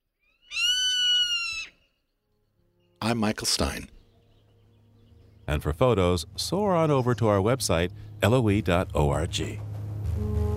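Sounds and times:
zone-tailed hawk long whistled scream: 0:00.4 - 0:02.0
speech: 0:03.0 - 0:04.0, 0:05.5 - 0:10.4.

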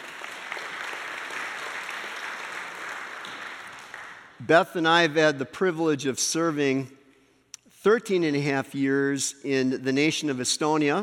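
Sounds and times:
audience clapping: 0:00.0 - 0:04.6
speech: 0:04.4 - 0:07.0, 0:07.8 - 0:11.0.

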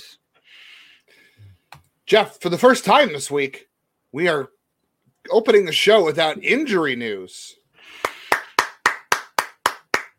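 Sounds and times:
speech: 0:02.1 - 0:04.6, 0:05.2 - 0:08.0
hand clap: 0:08.0 - 0:10.1.

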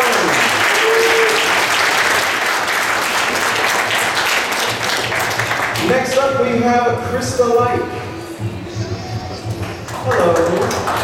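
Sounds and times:
audience applause: 0:00.0 - 0:06.0, 0:09.6 - 0:11.0
speech: 0:06.4 - 0:08.0, 0:10.1 - 0:11.0.

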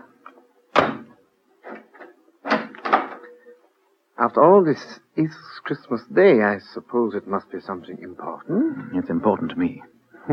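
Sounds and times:
door being bolted shut: 0:00.7 - 0:03.2
speech: 0:04.2 - 0:10.3.

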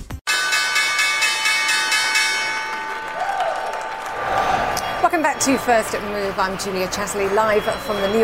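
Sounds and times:
New York Stock Exchange opening bell: 0:00.3 - 0:04.8
speech: 0:05.4 - 0:08.2.

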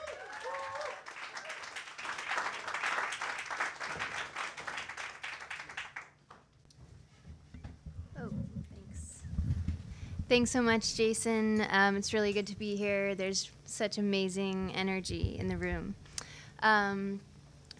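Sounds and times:
audience round of applause: 0:00.0 - 0:06.4
speech: 0:10.3 - 0:16.0, 0:16.6 - 0:17.3.

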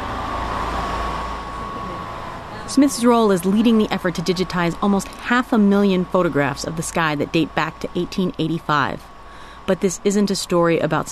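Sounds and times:
air conditioning unit running: 0:00.0 - 0:11.0
speech: 0:02.7 - 0:09.1, 0:09.7 - 0:11.0.

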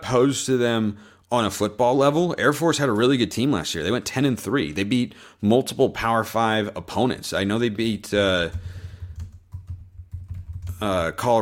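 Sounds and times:
speech: 0:00.1 - 0:08.8, 0:10.8 - 0:11.4
typing on a computer keyboard: 0:08.4 - 0:10.8.

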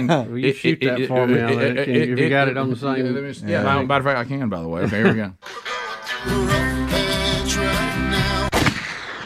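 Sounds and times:
speech: 0:00.0 - 0:07.0
rhythmic music: 0:05.4 - 0:08.5
gunshot sound effect: 0:08.5 - 0:09.2.

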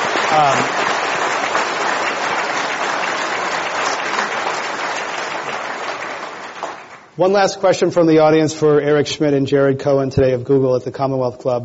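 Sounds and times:
audience applause: 0:00.0 - 0:07.2
speech: 0:00.3 - 0:00.8, 0:07.2 - 0:11.6.

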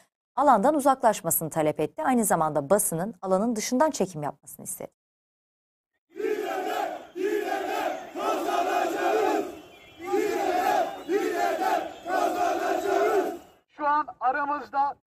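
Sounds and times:
speech: 0:00.4 - 0:05.0, 0:13.8 - 0:15.0
protesters chanting in unison: 0:06.1 - 0:13.6.

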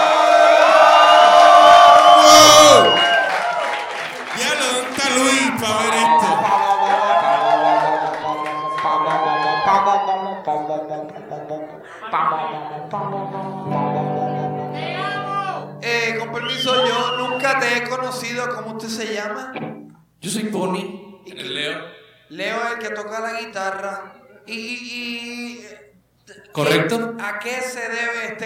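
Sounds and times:
crowd applause: 0:00.0 - 0:10.1
crowd cheering: 0:00.0 - 0:13.9, 0:14.6 - 0:18.3
speech: 0:18.4 - 0:20.9, 0:22.3 - 0:28.4.

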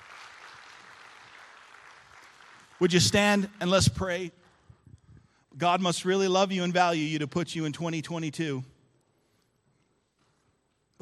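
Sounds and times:
audience applause: 0:00.0 - 0:03.5
speech: 0:02.8 - 0:04.4, 0:05.6 - 0:08.7.

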